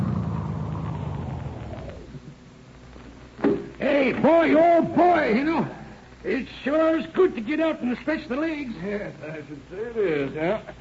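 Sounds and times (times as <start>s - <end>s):
car approaching and pulling up: 0.0s - 2.4s
speech: 4.1s - 10.7s.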